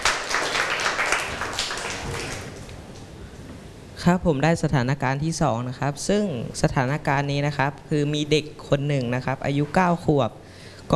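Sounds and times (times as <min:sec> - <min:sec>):
classroom applause for a student: 0:00.0 - 0:02.8
speech: 0:04.0 - 0:10.9.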